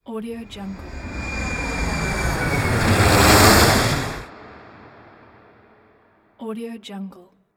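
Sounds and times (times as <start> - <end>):
plane: 0.3 - 5.8.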